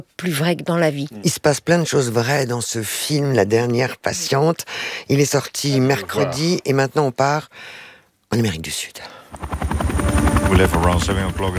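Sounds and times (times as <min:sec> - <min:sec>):
speech: 0:00.0 - 0:09.6, 0:10.5 - 0:11.5
helicopter rotor chopping in flight on an early-morning trip in South America: 0:09.3 - 0:11.5.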